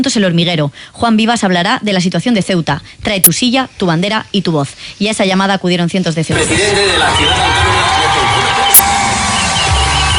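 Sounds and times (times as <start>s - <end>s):
speech: 0.0s - 7.9s
hundreds of people in Ceuta cheering at a gathering: 6.3s - 10.1s.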